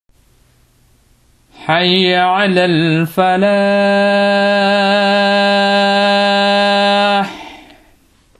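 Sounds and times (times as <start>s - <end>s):
adzan call to prayer: 1.6s - 7.8s.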